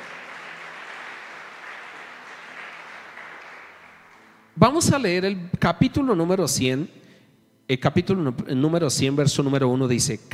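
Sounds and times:
audience applause: 0.0s - 4.4s
speech: 4.6s - 7.0s, 7.7s - 10.3s.

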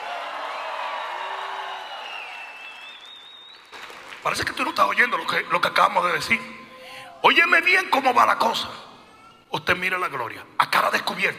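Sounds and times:
audience shouting and cheering: 0.0s - 3.1s
high whoops and cries: 0.0s - 3.8s
speech: 4.2s - 6.6s, 7.2s - 8.9s, 9.5s - 11.3s.

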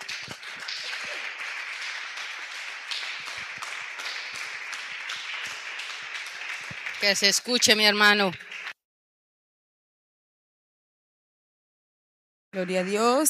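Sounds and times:
audience applause: 0.0s - 8.8s, 12.6s - 13.2s
speech: 7.0s - 8.5s, 12.6s - 13.2s.

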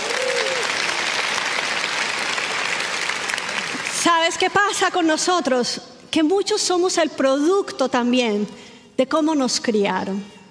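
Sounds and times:
audience applause: 0.0s - 4.0s
speech: 4.0s - 10.4s.

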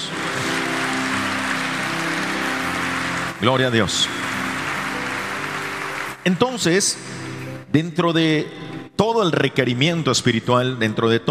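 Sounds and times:
audience applause: 0.0s - 7.6s
speech: 3.4s - 4.2s, 6.3s - 11.2s.

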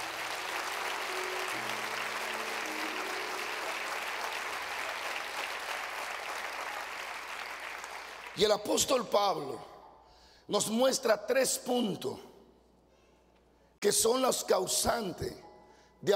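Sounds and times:
audience applause: 0.0s - 8.4s
speech: 8.4s - 9.7s, 10.5s - 12.3s, 13.8s - 15.4s, 16.0s - 16.1s.

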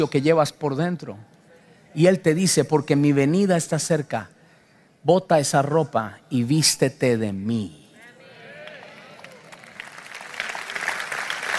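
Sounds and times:
speech: 0.0s - 1.3s, 2.0s - 4.4s, 5.0s - 7.8s
audience applauding: 8.6s - 11.5s.

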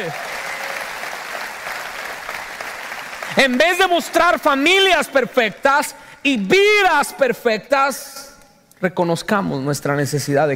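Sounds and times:
speech: 0.0s - 0.3s, 3.4s - 10.5s
audience applause: 0.0s - 4.4s.

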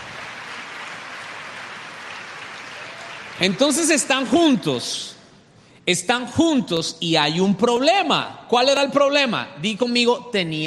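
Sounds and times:
audience applauding: 0.0s - 4.9s
speech: 3.4s - 5.2s, 5.9s - 10.6s.

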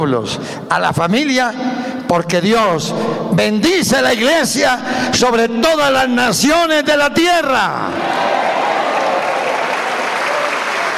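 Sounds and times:
speech: 0.0s - 8.3s
audience applause: 8.0s - 10.9s.

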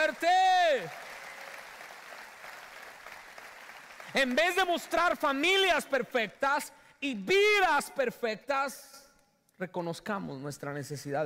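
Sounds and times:
audience applause: 0.0s - 5.2s
speech: 0.1s - 1.1s, 4.1s - 9.0s, 9.6s - 11.2s.

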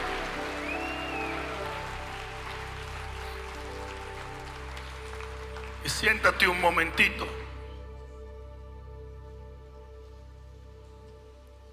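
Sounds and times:
audience applause in a large room: 0.0s - 7.4s
speech: 6.0s - 7.4s.

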